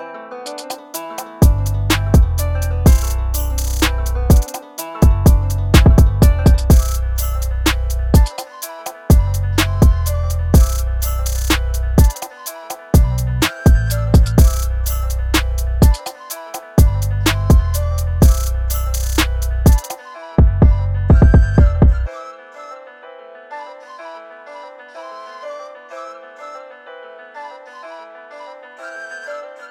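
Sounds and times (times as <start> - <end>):
beats: 0.5 - 22.1.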